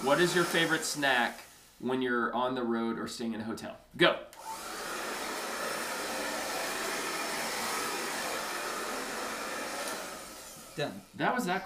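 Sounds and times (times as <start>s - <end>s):
hair dryer blowing on a customer in a barbershop: 0.0s - 1.7s, 4.4s - 11.2s
speech: 0.0s - 4.6s, 10.8s - 11.6s.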